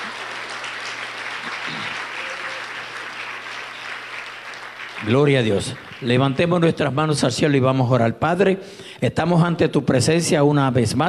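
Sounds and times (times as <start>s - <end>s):
audience applause: 0.0s - 6.7s
speech: 5.0s - 11.0s.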